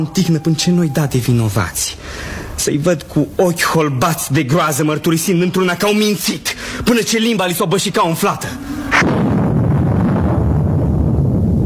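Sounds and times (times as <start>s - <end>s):
speech: 0.0s - 9.3s
winter thunder: 8.9s - 11.6s.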